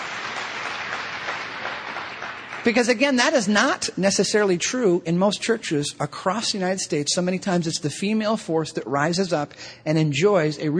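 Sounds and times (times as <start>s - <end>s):
church congregation applauding: 0.0s - 3.6s
speech: 2.6s - 10.7s.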